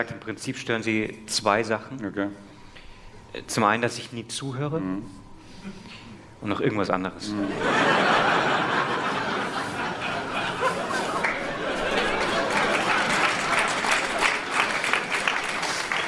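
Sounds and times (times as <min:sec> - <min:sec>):
speech: 0:00.0 - 0:02.5, 0:03.3 - 0:08.6
scattered chuckles and light murmuring: 0:07.4 - 0:14.7
audience clapping: 0:08.9 - 0:16.0.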